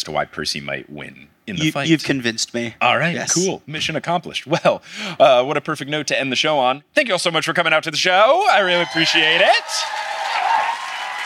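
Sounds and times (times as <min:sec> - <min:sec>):
speech: 0:00.0 - 0:10.1
live audience applause: 0:08.7 - 0:11.2.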